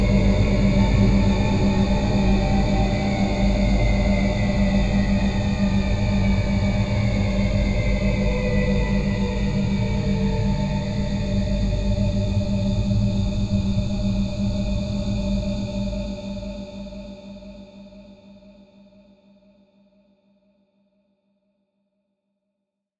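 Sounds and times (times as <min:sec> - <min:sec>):
horror drone atmosphere: 0:00.0 - 0:18.1.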